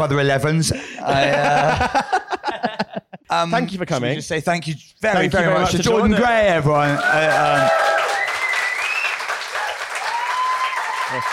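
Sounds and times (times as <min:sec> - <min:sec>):
speech: 0:00.0 - 0:02.2, 0:03.3 - 0:07.8
laughter: 0:00.8 - 0:03.3
audience applause: 0:06.7 - 0:11.3.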